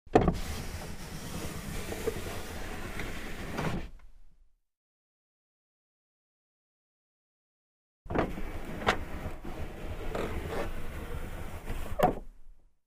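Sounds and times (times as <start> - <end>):
car glass window lowered and raised manually: 0.1 - 4.0, 8.1 - 12.3.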